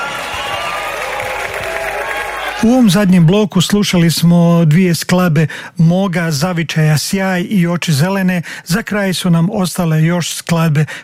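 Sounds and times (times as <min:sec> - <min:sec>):
audience applause and cheering at a live concert: 0:00.0 - 0:03.3
speech: 0:02.6 - 0:11.0.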